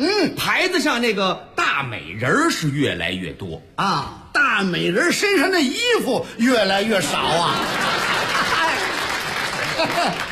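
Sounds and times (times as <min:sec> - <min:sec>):
speech: 0:00.2 - 0:08.0, 0:09.8 - 0:10.3
laughter: 0:07.0 - 0:10.3
audience applause: 0:07.2 - 0:10.3.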